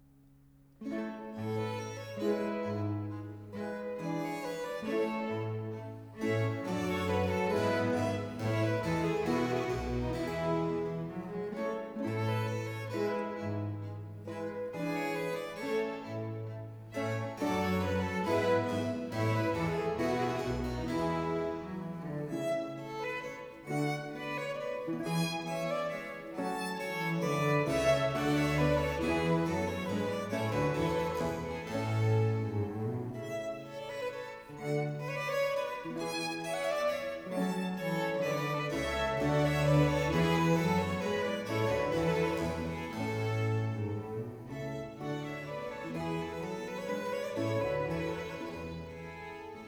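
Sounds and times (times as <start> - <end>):
concerto grosso sarabande largo: 0.0 - 49.6.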